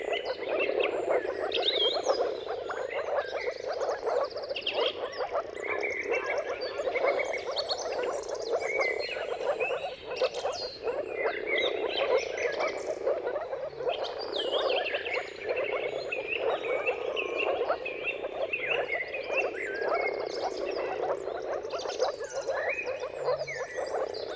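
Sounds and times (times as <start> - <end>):
birds whistling and trilling: 0.0 - 24.3
moor frogs bubbling mating calls: 0.0 - 24.3.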